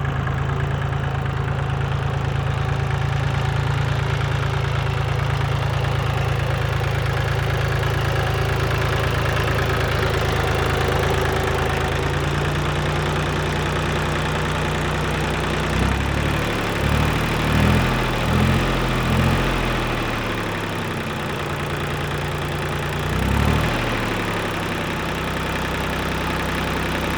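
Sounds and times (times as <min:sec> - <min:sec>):
tractor passing revving starting and shutting off: 0:00.2 - 0:27.1.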